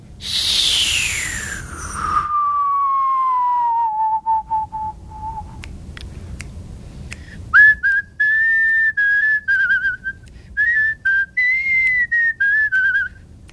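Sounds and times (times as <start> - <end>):
person whistling: 0.2 - 5.7, 7.6 - 13.2.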